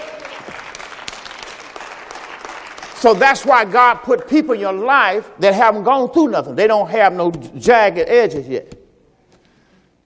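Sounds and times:
audience clapping: 0:00.0 - 0:04.0
speech: 0:03.0 - 0:08.8.

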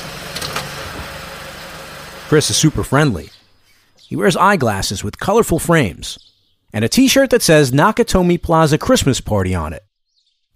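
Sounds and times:
SUV engine idling in a driveway: 0:00.0 - 0:03.5
speech: 0:02.3 - 0:03.4, 0:04.1 - 0:09.9.

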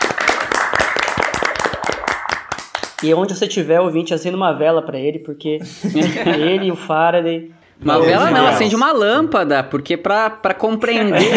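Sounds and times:
applause: 0:00.0 - 0:03.2
speech: 0:03.0 - 0:11.3
laughter: 0:05.6 - 0:07.0, 0:11.1 - 0:11.3.

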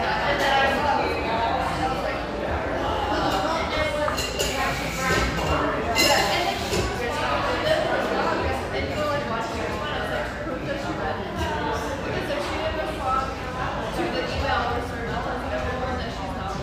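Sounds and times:
many overlapping voices chattering in a café in Irvine, California: 0:00.0 - 0:16.6
dishes clinking: 0:03.3 - 0:07.1.

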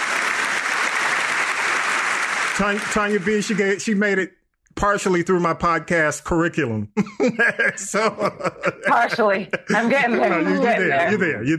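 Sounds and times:
audience applauding a guest: 0:00.0 - 0:04.1
laughter: 0:02.6 - 0:04.0, 0:06.8 - 0:11.5
speech: 0:02.6 - 0:11.5.

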